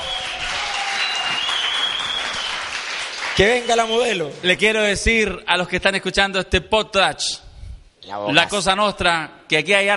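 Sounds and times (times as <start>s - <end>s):
audience ovation applause: 0.0s - 3.9s
speech: 3.4s - 7.4s, 8.0s - 9.9s.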